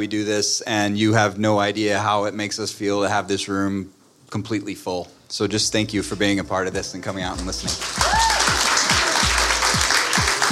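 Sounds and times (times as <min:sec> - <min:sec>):
speech: 0:00.0 - 0:08.3
audience applause: 0:07.5 - 0:10.5.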